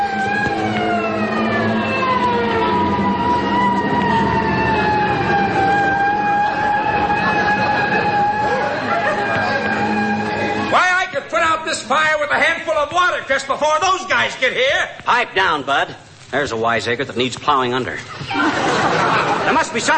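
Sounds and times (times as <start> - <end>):
fire engine siren wailing: 0.0 - 10.9
laughter: 6.1 - 10.7, 18.0 - 19.9
speech: 12.3 - 18.2, 19.4 - 19.9.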